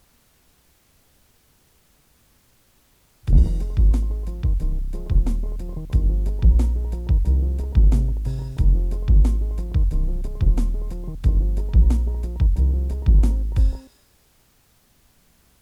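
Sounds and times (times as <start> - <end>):
Boss drum machine beat: 3.3 - 13.9.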